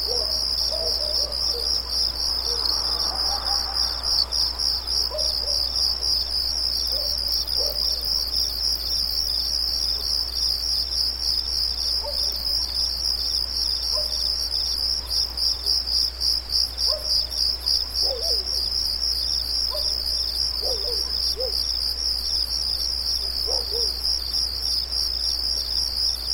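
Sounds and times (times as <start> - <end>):
crickets trilling at night: 0.0 - 26.3.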